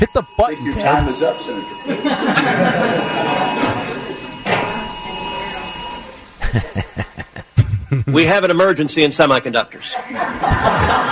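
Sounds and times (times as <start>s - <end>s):
speech: 0.0s - 3.3s, 8.1s - 11.1s
laughter: 0.0s - 4.8s, 6.4s - 8.6s, 9.8s - 11.1s
emergency alert system tone: 0.0s - 7.6s.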